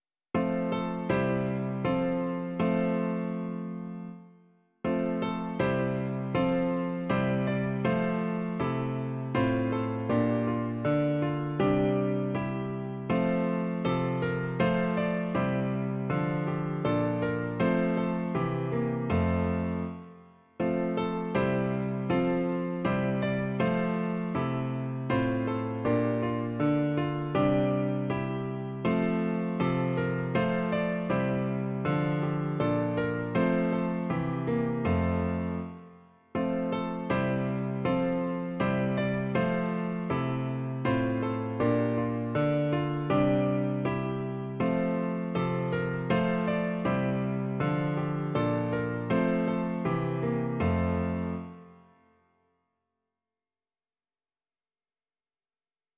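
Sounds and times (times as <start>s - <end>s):
piano: 0.0s - 52.5s.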